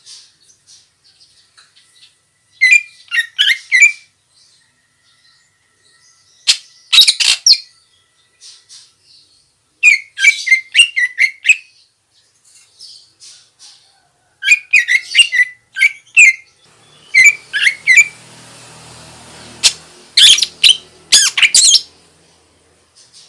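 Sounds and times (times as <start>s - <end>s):
female greater green leafbird sharp chirps: 0.0s - 13.9s, 14.5s - 23.2s.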